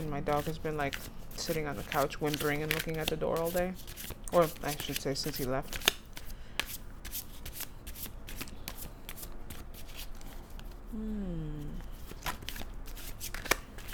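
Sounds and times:
speech: 0:00.0 - 0:06.0
tarot cards being shuffled: 0:00.0 - 0:10.8, 0:11.8 - 0:13.9.

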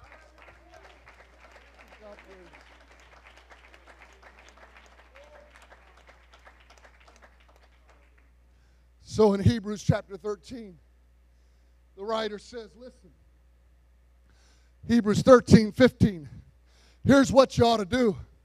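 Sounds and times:
audience clapping: 0:00.0 - 0:08.4
speech: 0:02.1 - 0:02.8, 0:09.2 - 0:10.8, 0:12.0 - 0:13.2, 0:14.8 - 0:16.4, 0:17.0 - 0:18.3.

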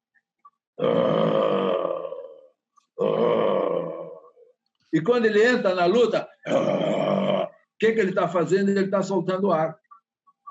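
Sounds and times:
speech: 0:00.8 - 0:01.3, 0:05.0 - 0:06.9, 0:07.8 - 0:09.8
person imitating an animal growl: 0:00.8 - 0:04.4, 0:06.5 - 0:07.6.

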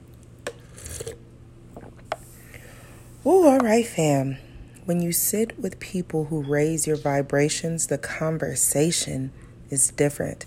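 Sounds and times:
cup being handled: 0:00.4 - 0:01.2
person sipping tea: 0:00.5 - 0:01.3
speech: 0:03.2 - 0:10.4.

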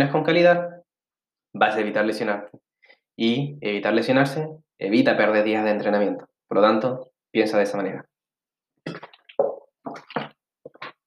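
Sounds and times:
speech: 0:00.0 - 0:00.8, 0:01.5 - 0:08.1
person drinking a sip of water: 0:08.9 - 0:11.0.

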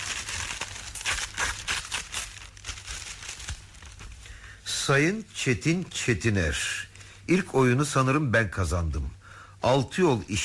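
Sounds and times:
envelope from ABC being opened and torn: 0:00.0 - 0:04.2
paper rustling and crinkling: 0:00.0 - 0:04.4
speech: 0:04.9 - 0:10.4.

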